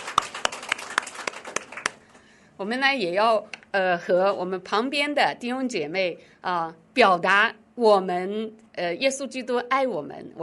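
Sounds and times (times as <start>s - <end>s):
church congregation clapping to welcome guests: 0.0s - 2.2s
speech: 2.6s - 10.4s.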